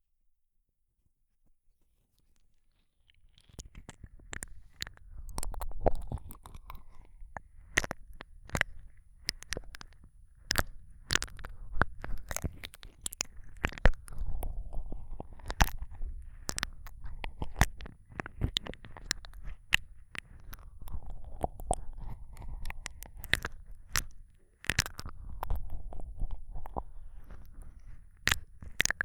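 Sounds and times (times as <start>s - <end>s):
ASMR ear licking sounds: 3.5s - 29.0s.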